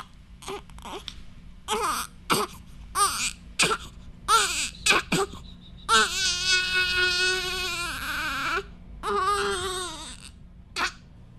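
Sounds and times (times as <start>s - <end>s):
fussy newborn baby girl crying: 0.0s - 1.1s, 1.7s - 11.0s
speech: 0.5s - 2.2s.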